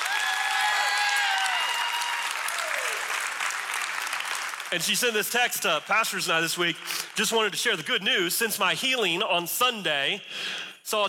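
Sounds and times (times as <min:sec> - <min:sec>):
audience clapping and applauding: 0:00.0 - 0:07.8
speech: 0:04.7 - 0:11.0.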